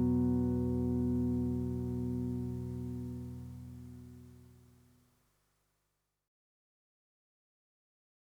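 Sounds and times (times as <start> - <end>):
guitar through Roland Space Echo spring reverb: 0.0 - 4.3.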